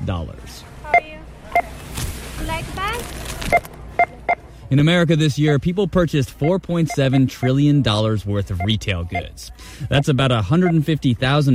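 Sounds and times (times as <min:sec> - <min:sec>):
speech: 0:00.1 - 0:01.1, 0:04.7 - 0:11.5
checkout scanner beeps: 0:00.9 - 0:01.8, 0:03.4 - 0:04.5, 0:06.3 - 0:07.8, 0:08.4 - 0:11.0.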